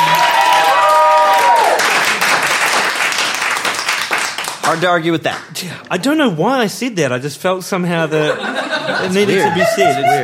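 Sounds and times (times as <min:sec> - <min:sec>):
person whooping: 0:00.0 - 0:01.9
audience applause: 0:00.0 - 0:05.0
speech: 0:04.7 - 0:10.2
laughter: 0:08.1 - 0:10.2.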